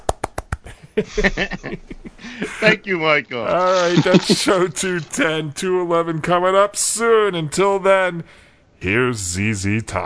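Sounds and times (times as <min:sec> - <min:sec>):
polite clap: 0:00.0 - 0:00.7
laughter: 0:00.7 - 0:05.2
speech: 0:01.0 - 0:10.0.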